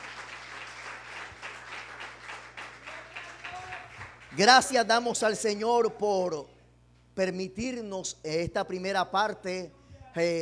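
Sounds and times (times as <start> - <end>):
crowd applauding: 0.0 - 4.8
low steady hum: 0.0 - 10.4
speech: 4.4 - 6.5, 7.2 - 10.4.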